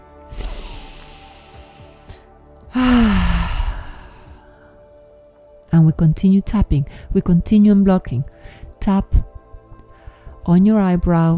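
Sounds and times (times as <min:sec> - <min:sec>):
deep breath in through the nose and out through the mouth: 0:00.3 - 0:04.8
speech: 0:05.8 - 0:09.3, 0:10.4 - 0:11.3.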